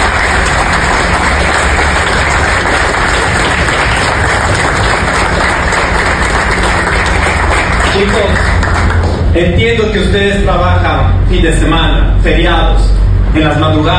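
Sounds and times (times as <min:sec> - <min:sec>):
crowd clapping: 0:00.0 - 0:09.4
speech: 0:08.0 - 0:08.4, 0:09.4 - 0:13.9.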